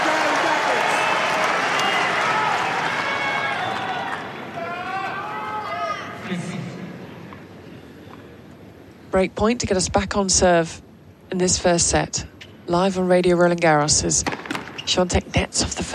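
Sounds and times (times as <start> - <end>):
tennis crowd roaring: 0.0 - 6.2
speech: 9.2 - 15.9.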